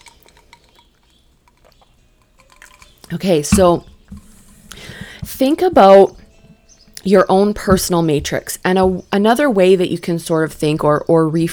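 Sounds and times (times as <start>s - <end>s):
person sipping coffee: 0.0s - 5.4s
speech: 3.1s - 3.9s, 5.4s - 6.2s, 7.0s - 11.5s.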